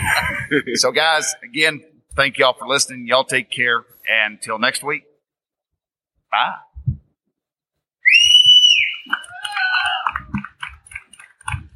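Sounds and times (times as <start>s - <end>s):
laughter: 0.0s - 1.3s
speech: 0.5s - 5.1s, 6.3s - 6.7s
loud high whistle: 8.0s - 9.2s
shrill wavering cheering: 8.0s - 10.5s
scattered claps: 9.0s - 11.7s.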